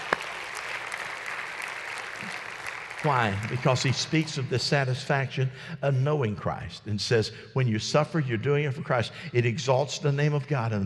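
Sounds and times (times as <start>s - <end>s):
audience clapping: 0.0s - 4.8s
speech: 3.0s - 10.8s.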